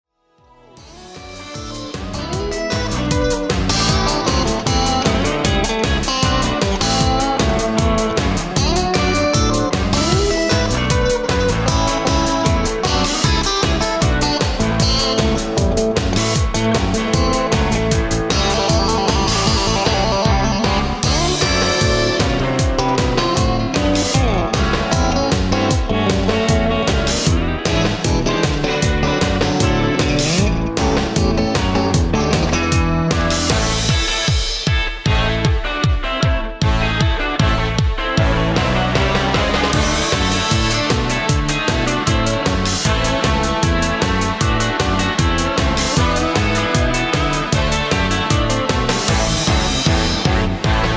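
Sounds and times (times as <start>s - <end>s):
twelve-bar rock music: 0.4s - 50.9s.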